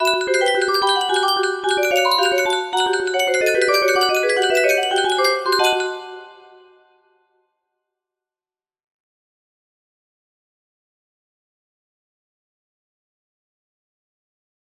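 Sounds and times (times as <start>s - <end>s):
music box background theme: 0.0s - 7.1s.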